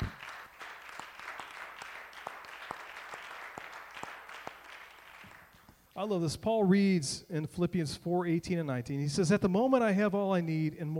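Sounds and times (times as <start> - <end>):
audience hand clapping: 0.0 - 5.8
speech: 6.0 - 10.9.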